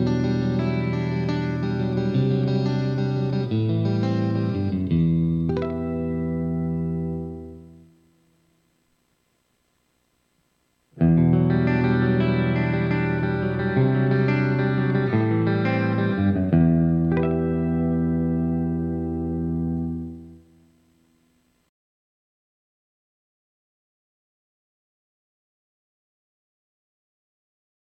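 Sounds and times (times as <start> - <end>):
clean electric guitar through split mini humbucker pickup: 0.0 - 8.4, 10.9 - 21.6.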